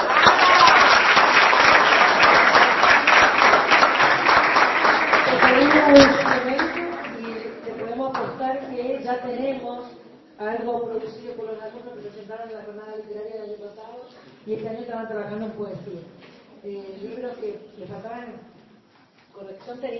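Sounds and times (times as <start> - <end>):
audience applause: 0.0 - 7.7
speech: 10.6 - 18.6, 19.4 - 19.9.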